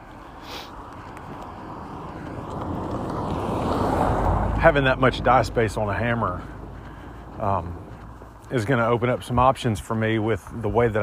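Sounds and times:
car passing by outdoors: 0.4 - 8.9
speech: 4.6 - 6.5, 7.4 - 7.8, 8.5 - 11.0.

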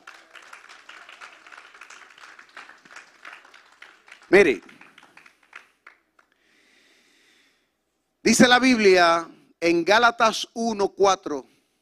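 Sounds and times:
crowd applauding: 0.0 - 6.4
speech: 4.3 - 4.7, 8.3 - 11.5.

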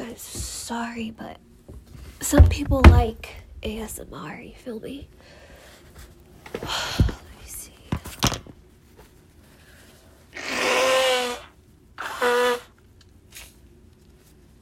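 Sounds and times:
speech: 0.2 - 1.5, 2.2 - 5.4
person blowing nose into a tissue: 10.3 - 13.5.

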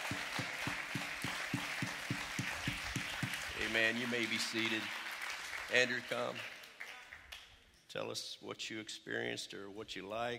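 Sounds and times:
applause: 0.0 - 7.6
audience clapping in rhythm: 0.0 - 7.6
speech: 3.7 - 5.0, 5.7 - 6.5, 7.9 - 10.3.

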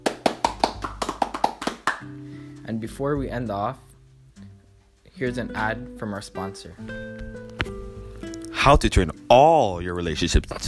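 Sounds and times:
round of applause: 0.0 - 2.1
speech: 2.7 - 3.9, 5.2 - 7.4, 8.6 - 10.6.

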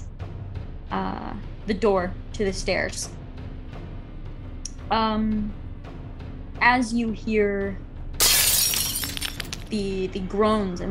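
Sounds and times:
speech: 1.0 - 3.2, 4.9 - 5.6, 6.6 - 7.8, 9.7 - 10.8
glass shards tinkling and scattering: 8.2 - 9.7
window glass shattering: 8.2 - 9.7.

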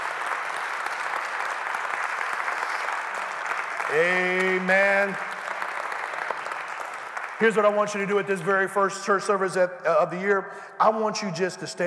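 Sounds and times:
audience clapping: 0.0 - 8.9
speech: 3.9 - 5.3, 7.4 - 11.8.

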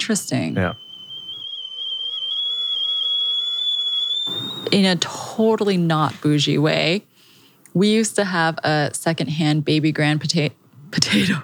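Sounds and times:
stove kettle whistling: 0.0 - 6.4
speech: 0.1 - 0.8, 4.7 - 7.1, 7.7 - 11.4.

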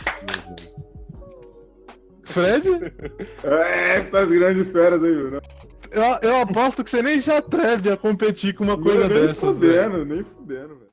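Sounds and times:
hand clapping: 0.0 - 1.5
speech: 2.3 - 10.9
laughter: 2.4 - 5.4, 8.9 - 10.0.

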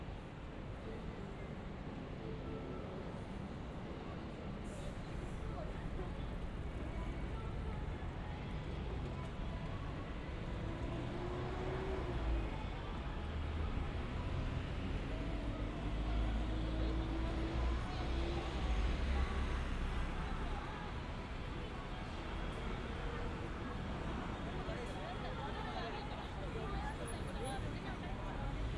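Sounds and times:
murmur of voices on a busy Shibuya street in Tokyo: 0.0 - 28.7
passing traffic on a Shibuya street in Tokyo: 0.0 - 28.7.

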